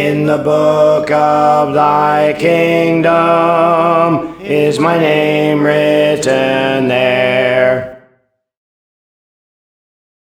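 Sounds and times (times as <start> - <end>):
alto voice singing songs: 0.0 - 8.1.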